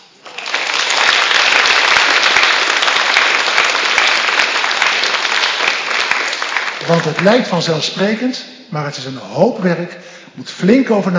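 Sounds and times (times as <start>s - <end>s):
audience applause for volunteers: 0.0s - 7.8s
speech: 6.9s - 11.1s.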